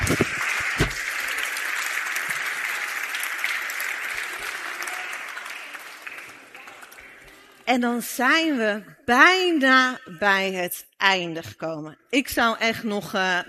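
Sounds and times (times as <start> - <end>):
audience applause: 0.0 - 7.7
speech: 7.7 - 13.4.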